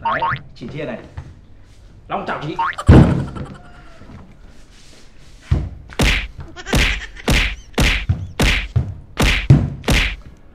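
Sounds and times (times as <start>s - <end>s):
speech: 0.1s - 1.3s, 2.1s - 3.7s
laughter: 2.6s - 4.1s
fists punching a punching bag: 6.0s - 10.2s.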